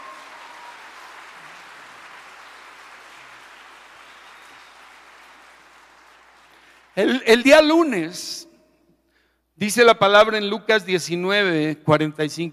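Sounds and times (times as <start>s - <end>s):
audience applause: 0.0s - 7.0s
speech: 7.0s - 8.5s, 9.6s - 12.5s.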